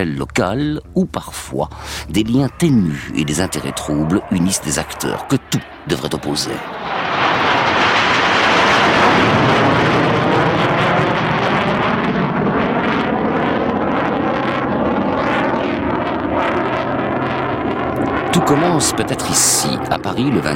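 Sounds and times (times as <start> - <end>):
speech: 0.0 - 7.5, 18.4 - 20.5
Mirage fighter jets flying overhead: 1.2 - 20.5.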